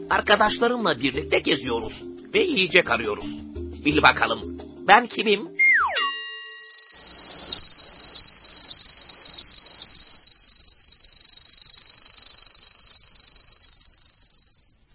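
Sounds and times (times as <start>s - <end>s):
speech: 0.1s - 5.6s
bright ringing chime-like hits: 6.0s - 7.1s
high-pitched insect trill: 6.4s - 14.8s.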